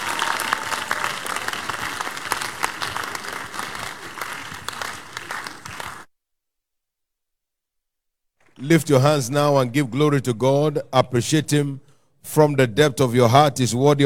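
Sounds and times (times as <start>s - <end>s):
audience clapping: 0.0s - 6.1s
speech: 8.6s - 14.0s.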